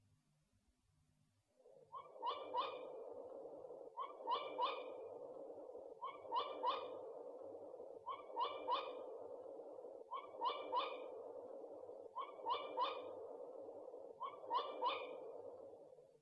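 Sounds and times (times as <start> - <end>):
owl hooting: 1.6 - 16.2.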